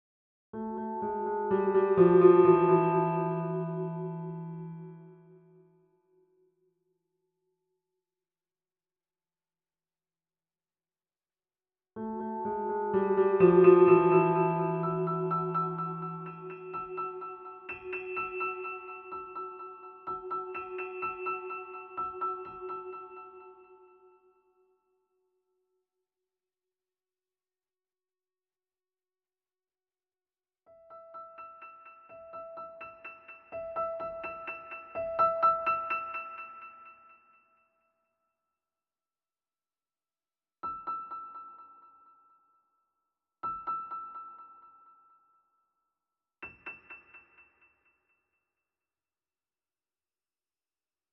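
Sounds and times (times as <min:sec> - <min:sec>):
piano piece with effects: 0:00.6 - 0:05.7, 0:12.0 - 0:24.2, 0:30.8 - 0:36.9.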